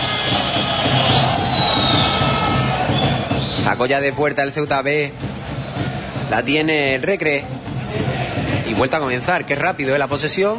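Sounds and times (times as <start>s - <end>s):
stadium crowd whistling in protest: 0.0s - 4.5s
stadium crowd roar: 0.0s - 4.6s, 5.2s - 9.6s
shrill whistle: 0.1s - 3.8s
speech: 3.8s - 5.2s, 5.8s - 7.6s, 8.8s - 10.5s.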